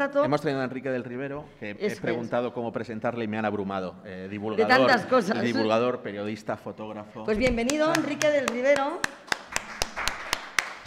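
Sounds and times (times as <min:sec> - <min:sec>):
speech: 0:00.0 - 0:09.4
sparse audience applause hampered by held wine glasses: 0:09.0 - 0:10.8.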